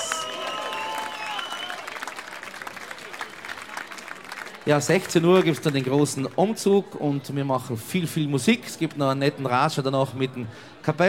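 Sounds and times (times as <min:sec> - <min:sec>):
cheering and whistles: 0:00.0 - 0:04.0
crowd applauding: 0:00.0 - 0:06.4
speech: 0:04.7 - 0:11.0.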